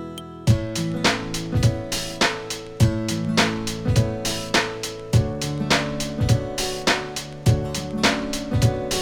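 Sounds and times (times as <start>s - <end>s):
pop chord progression: 0.5s - 9.0s.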